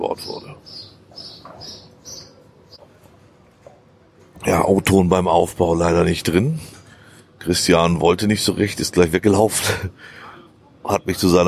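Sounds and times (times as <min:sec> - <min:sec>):
speech: 0:00.0 - 0:01.8, 0:04.5 - 0:06.7, 0:07.4 - 0:10.2, 0:10.8 - 0:11.4
birds squawking overhead while being fed: 0:00.0 - 0:02.9.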